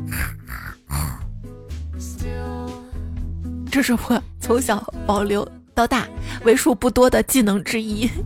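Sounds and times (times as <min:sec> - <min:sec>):
person imitating pig grunting: 0:00.0 - 0:01.3
speech: 0:03.8 - 0:08.2.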